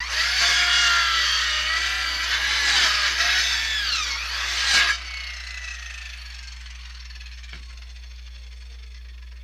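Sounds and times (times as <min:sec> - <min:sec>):
circular saw: 0:00.0 - 0:09.4.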